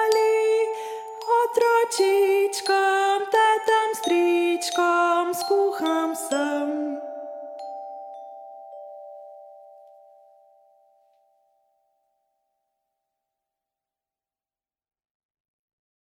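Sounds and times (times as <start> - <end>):
sad vocal song: 0.0 - 7.6.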